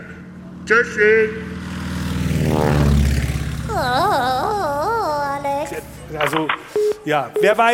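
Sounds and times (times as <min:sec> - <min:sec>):
airplane propeller engine drone: 0:00.0 - 0:06.2
speech: 0:00.7 - 0:01.5, 0:06.2 - 0:07.7.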